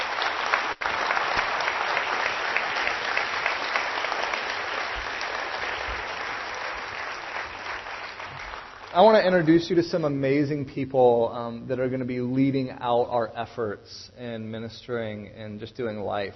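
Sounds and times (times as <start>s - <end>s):
audience applause: 0.0s - 9.4s
speech: 9.0s - 16.3s.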